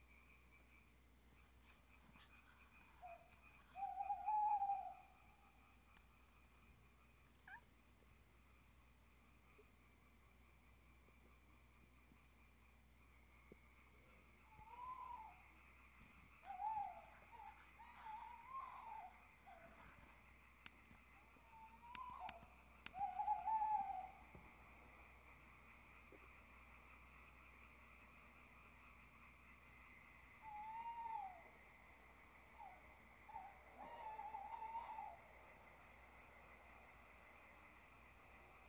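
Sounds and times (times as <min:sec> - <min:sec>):
background hiss: 0:00.0 - 0:38.6
owl hooting: 0:01.4 - 0:07.7, 0:14.0 - 0:28.7, 0:29.5 - 0:38.6
soft clicks: 0:20.6 - 0:21.0.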